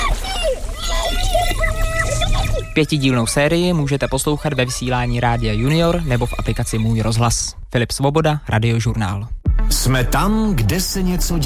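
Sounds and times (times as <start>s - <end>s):
underwater splashing and sloshing recorded with a hydrophone: 0.0s - 6.9s
indistinct warbling voices: 0.0s - 7.3s
speech: 2.8s - 11.4s.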